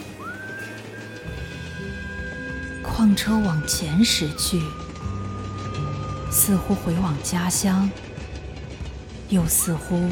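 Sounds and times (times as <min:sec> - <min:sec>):
whistled tune: 0:00.0 - 0:08.0
speech: 0:03.0 - 0:04.8, 0:06.4 - 0:08.0, 0:09.3 - 0:10.1.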